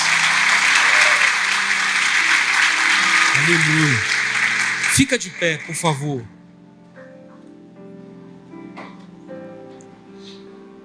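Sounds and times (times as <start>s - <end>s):
audience applause: 0.0s - 6.3s
speech: 3.5s - 4.1s, 4.9s - 6.4s.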